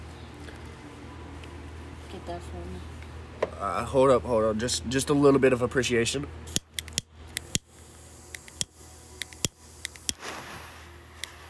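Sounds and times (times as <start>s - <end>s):
speech: 2.1s - 6.6s
torch lighter being lit: 6.5s - 10.6s
torch lighter gas hiss: 7.4s - 11.4s.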